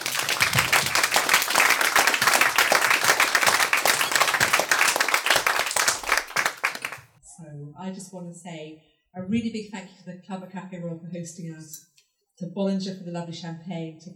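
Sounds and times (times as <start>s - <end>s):
audience applause: 0.0s - 7.2s
speech: 8.1s - 14.1s.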